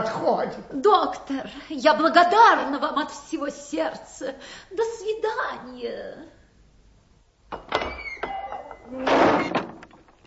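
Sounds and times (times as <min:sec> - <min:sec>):
speech: 0:00.0 - 0:06.4, 0:08.9 - 0:09.6
heavy cast-iron door forcefully shoved open into a tower: 0:07.6 - 0:10.0.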